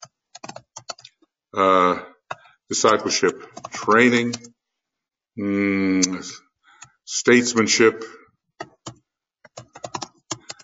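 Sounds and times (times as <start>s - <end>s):
keyboard typing as a note is written down: 0.0s - 1.2s, 3.2s - 4.6s, 8.6s - 10.6s
speech: 1.5s - 2.0s, 2.7s - 4.5s, 5.4s - 6.5s, 7.1s - 8.2s.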